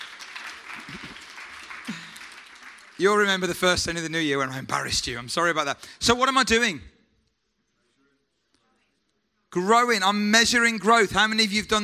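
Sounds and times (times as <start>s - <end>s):
round of applause: 0.0s - 4.1s
speech: 3.0s - 6.9s, 9.5s - 11.8s.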